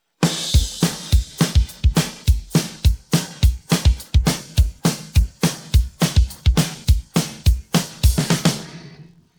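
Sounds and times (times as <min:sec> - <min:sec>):
drum pattern: 0:00.2 - 0:09.0.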